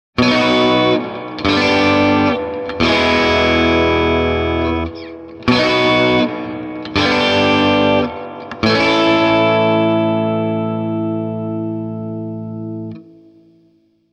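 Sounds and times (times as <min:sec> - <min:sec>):
Telecaster electric guitar through Swart AST amplifier: 0:00.2 - 0:14.0.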